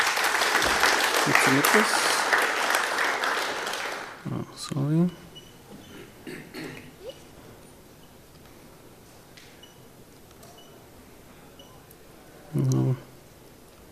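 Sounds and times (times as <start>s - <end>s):
audience applause greeting a speaker at a German-language talk: 0.0s - 4.3s.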